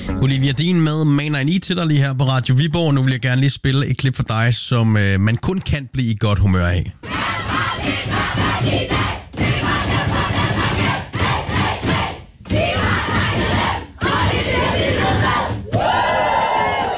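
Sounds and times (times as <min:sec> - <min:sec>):
speech: 0:00.2 - 0:07.2, 0:07.9 - 0:09.2
Danish women's national team cheering and chanting in the dressing room: 0:07.0 - 0:16.9.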